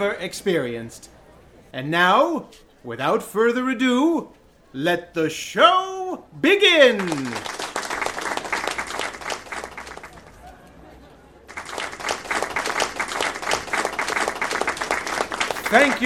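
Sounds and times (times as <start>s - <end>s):
speech: 0.0s - 7.6s, 15.7s - 16.0s
audience applause: 6.7s - 10.5s, 11.5s - 16.0s.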